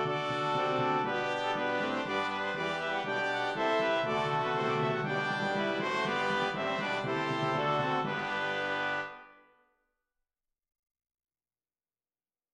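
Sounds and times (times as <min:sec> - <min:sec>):
brass playing a hymn: 0:00.0 - 0:09.4.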